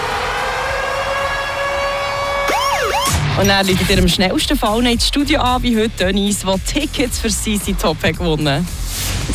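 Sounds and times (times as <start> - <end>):
siren-style ticket alarm jingle: 0.2 - 4.4
speech: 3.4 - 9.3.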